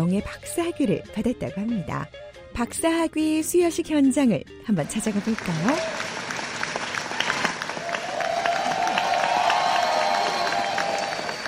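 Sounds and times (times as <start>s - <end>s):
speech: 0.0s - 6.0s
students applauding: 4.9s - 11.4s.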